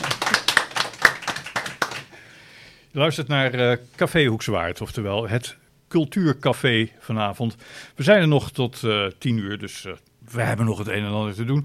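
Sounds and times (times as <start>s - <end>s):
small group clapping: 0.0s - 2.2s
speech: 2.9s - 11.6s.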